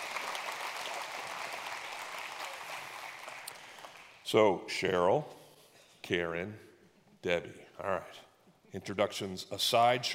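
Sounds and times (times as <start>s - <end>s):
audience clapping to welcome guests onto a stage: 0.0s - 4.4s
speech: 4.3s - 5.4s, 6.1s - 10.1s.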